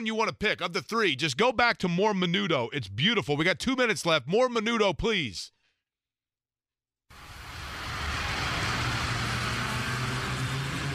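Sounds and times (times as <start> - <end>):
speech: 0.0 - 5.6
car engine revving: 7.2 - 10.9.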